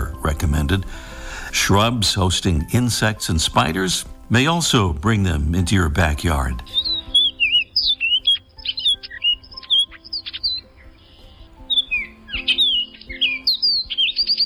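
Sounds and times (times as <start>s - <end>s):
speech: 0.4s - 6.8s
orchard oriole whistling song: 5.6s - 14.4s.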